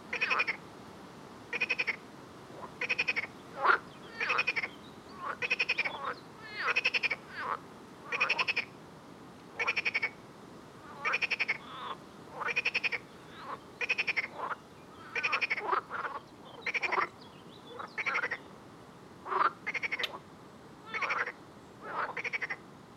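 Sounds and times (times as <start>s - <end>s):
frogs croaking with pulsed rattles and grating calls: 0.1s - 0.6s, 1.5s - 8.8s, 9.6s - 10.2s, 10.8s - 18.5s, 19.2s - 20.2s, 20.8s - 22.6s.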